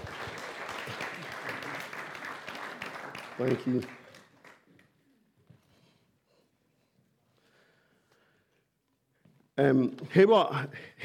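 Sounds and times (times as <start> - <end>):
round of applause: 0.0 - 5.0
speech: 3.4 - 4.0, 9.6 - 11.0.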